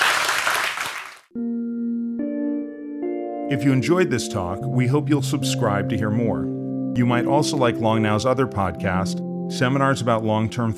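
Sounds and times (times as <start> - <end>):
audience applause: 0.0 - 1.3
sustained tonal music chords: 1.4 - 10.7
speech: 3.5 - 10.7.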